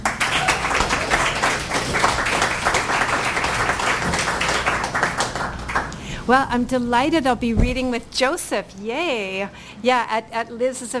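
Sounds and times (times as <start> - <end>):
audience applause for a performer at a reading event: 0.0 - 6.1
speech: 6.3 - 10.9.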